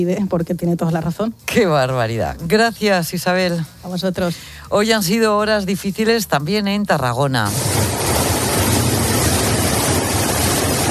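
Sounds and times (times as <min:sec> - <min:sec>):
speech: 0:00.0 - 0:07.9
heavy rain: 0:07.5 - 0:10.8.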